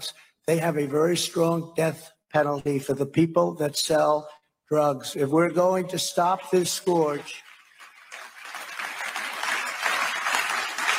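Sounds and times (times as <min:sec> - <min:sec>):
speech: 0:00.0 - 0:07.5
crowd applauding at a rally: 0:07.1 - 0:10.9.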